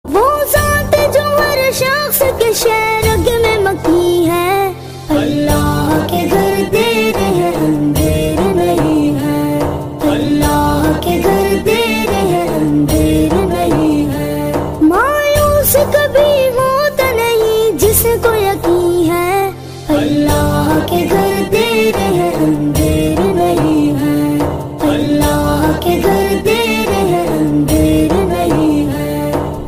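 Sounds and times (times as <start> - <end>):
naat singing: 0.1 - 29.6.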